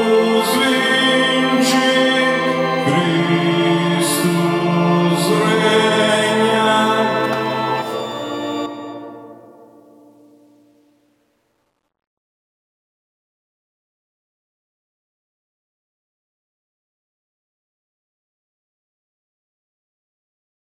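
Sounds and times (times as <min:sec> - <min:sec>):
sopranos singing: 0:00.0 - 0:10.6.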